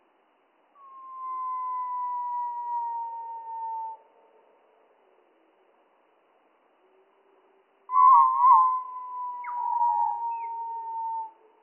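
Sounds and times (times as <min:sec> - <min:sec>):
Spotted flycatcher song, slowed, warbled phrases and whistled tones: 0:00.8 - 0:04.1, 0:07.9 - 0:11.6.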